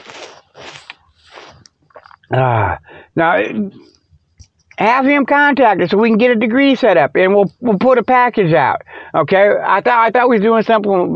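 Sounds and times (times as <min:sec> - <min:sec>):
person slurping a hot drink: 0:00.0 - 0:02.3
swallowing sounds: 0:00.6 - 0:02.9
speech: 0:02.3 - 0:03.9, 0:04.8 - 0:11.1.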